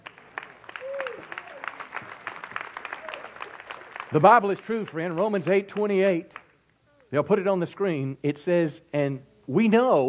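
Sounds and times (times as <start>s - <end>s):
audience applause: 0.0s - 5.4s
speech: 4.1s - 6.4s, 7.1s - 10.0s.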